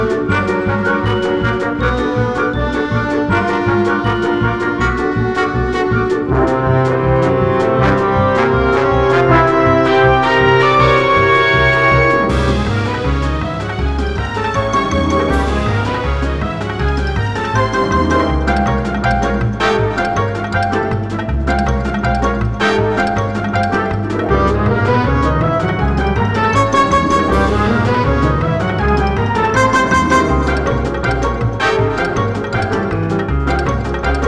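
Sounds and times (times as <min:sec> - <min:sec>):
guitar: 0:00.0 - 0:34.2.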